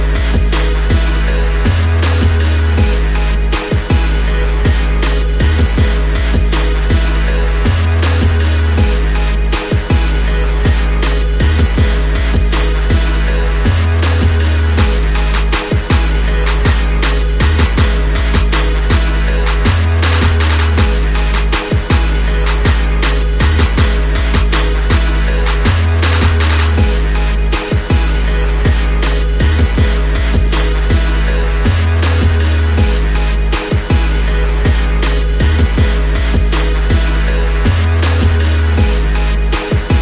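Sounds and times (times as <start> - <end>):
hip hop instrumental: 0.0 - 39.9.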